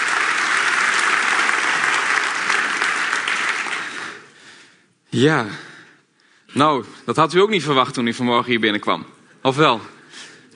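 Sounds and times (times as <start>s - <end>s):
audience applause: 0.0s - 4.4s
speech: 5.2s - 5.7s, 6.5s - 10.0s.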